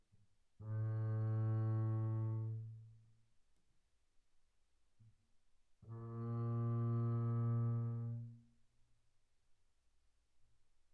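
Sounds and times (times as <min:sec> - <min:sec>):
double bass bowed pianissimo on A string C2 to Bb2: 0:00.6 - 0:02.8, 0:05.8 - 0:08.4.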